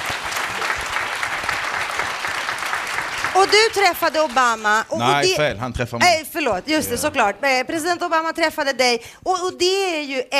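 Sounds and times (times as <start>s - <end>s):
audience applause: 0.0s - 5.2s
speech: 3.4s - 10.3s.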